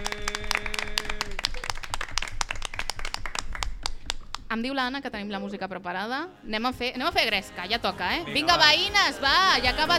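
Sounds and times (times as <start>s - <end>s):
crowd applauding: 0.0s - 4.4s
speech: 4.5s - 9.9s.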